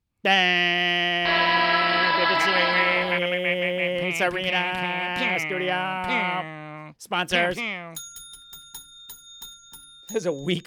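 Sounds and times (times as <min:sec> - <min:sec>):
speech: 0:00.2 - 0:00.9, 0:04.2 - 0:08.0, 0:10.1 - 0:10.6
laughter: 0:00.9 - 0:07.6
brassy horn sound effect: 0:01.2 - 0:03.4.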